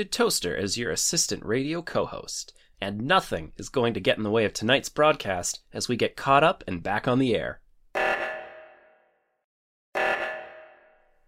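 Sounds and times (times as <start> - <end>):
speech: 0.0 - 7.6
phone ringtone: 8.0 - 8.8, 10.0 - 10.9.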